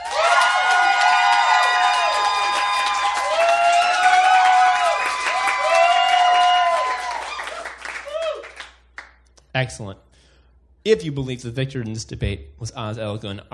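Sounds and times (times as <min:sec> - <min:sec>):
high whoops and shouts: 0:00.0 - 0:08.6
crowd clapping and cheering: 0:00.0 - 0:09.3
speech: 0:09.6 - 0:10.2, 0:10.8 - 0:13.5.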